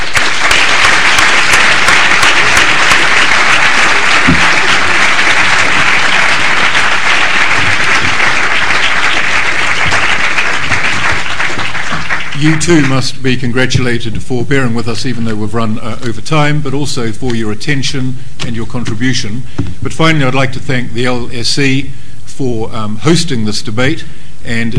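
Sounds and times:
audience applause after a debate at the LSE: 0.0s - 13.0s
speech: 12.4s - 24.7s.

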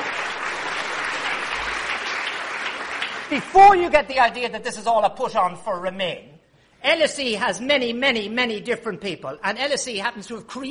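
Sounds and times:
audience applause at an evening event at the LSE: 0.0s - 4.2s
speech: 3.3s - 10.6s.

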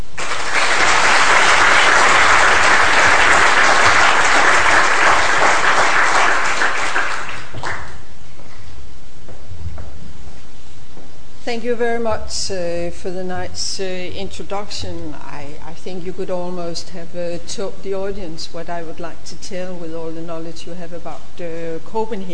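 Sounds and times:
audience applause welcoming a speaker at the LSE: 0.0s - 8.0s
speech: 11.5s - 22.3s.

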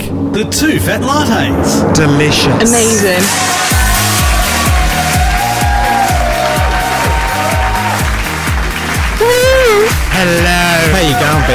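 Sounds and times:
speech: 0.4s - 3.8s, 10.2s - 11.5s
audience clapping in standing ovation: 3.2s - 11.5s.

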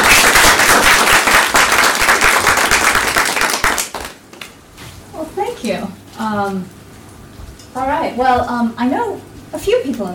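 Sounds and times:
audience applause welcoming a speaker at an LSE event: 0.0s - 4.5s
speech: 6.2s - 6.8s, 7.7s - 10.1s.

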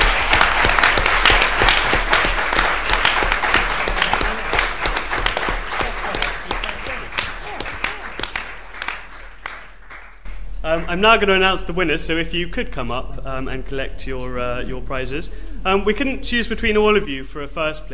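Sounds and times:
crowd clapping: 0.0s - 10.3s
speech: 10.9s - 17.9s.

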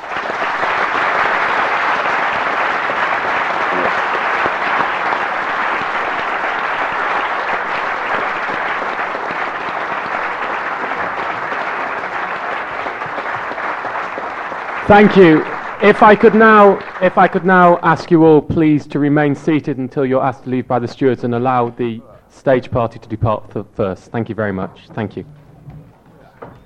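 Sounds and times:
audience applause: 0.0s - 18.4s
speech: 14.9s - 25.4s.

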